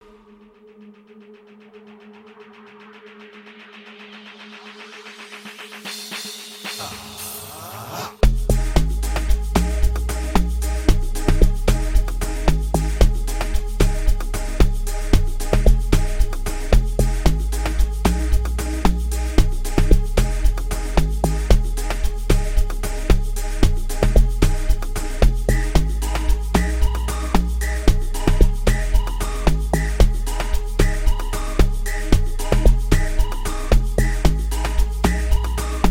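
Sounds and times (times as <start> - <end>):
deeper soulful music: 8.2 - 35.8.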